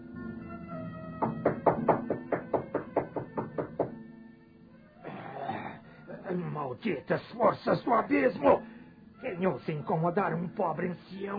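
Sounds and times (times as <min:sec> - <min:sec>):
knocking on a door: 0:01.2 - 0:04.0
speech: 0:06.7 - 0:11.3.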